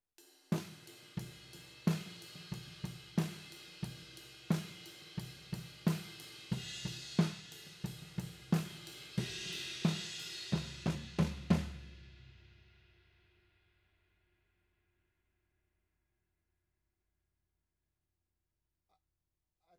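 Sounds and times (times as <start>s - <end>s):
tom drum: 0.5s - 12.2s.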